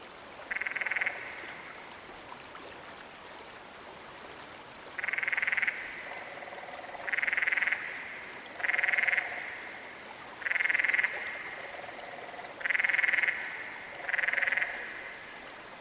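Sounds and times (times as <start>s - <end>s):
canyon frog calling: 0.5s - 1.7s, 5.0s - 9.8s, 10.4s - 15.3s.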